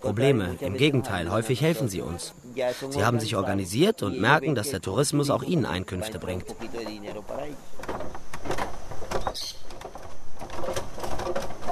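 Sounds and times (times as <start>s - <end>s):
speech: 0.0s - 7.9s
sharp knocks and rattles: 6.5s - 11.7s
wooden suspension bridge in Colombia creaking as hikers cross: 6.5s - 11.7s.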